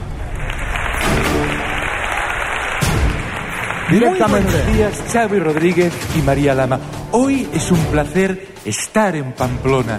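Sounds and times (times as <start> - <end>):
crowd applause: 0.0 - 6.6
speech: 3.9 - 9.9.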